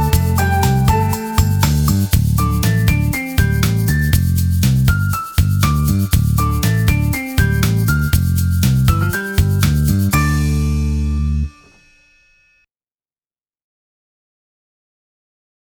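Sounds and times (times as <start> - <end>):
instrumental music: 0.0 - 12.2.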